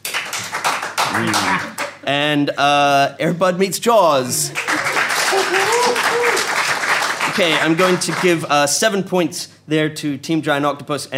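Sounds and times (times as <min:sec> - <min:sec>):
audience applause: 0:00.0 - 0:02.0, 0:04.4 - 0:08.5
voice calling out: 0:01.1 - 0:01.8
speech: 0:01.2 - 0:04.7, 0:07.3 - 0:11.1.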